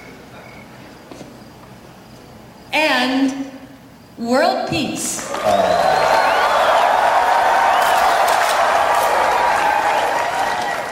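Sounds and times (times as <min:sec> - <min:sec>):
speech: 0:02.8 - 0:03.4, 0:04.2 - 0:06.0
audience applause: 0:05.2 - 0:10.9.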